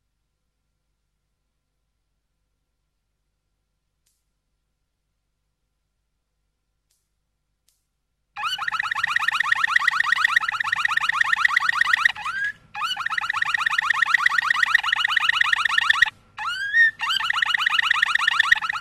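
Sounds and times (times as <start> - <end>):
Waterslager canary song: 8.4 - 18.7.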